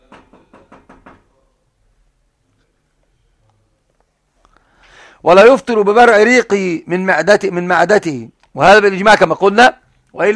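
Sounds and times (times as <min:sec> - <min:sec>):
sharp knocks on a door: 0:00.0 - 0:01.3
speech: 0:05.2 - 0:10.3.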